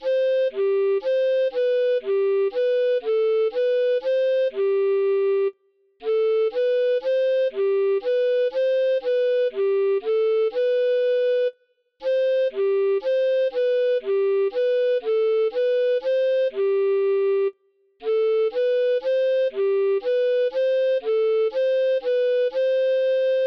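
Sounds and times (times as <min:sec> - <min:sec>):
recorder playing a waltz: 0:00.0 - 0:23.4.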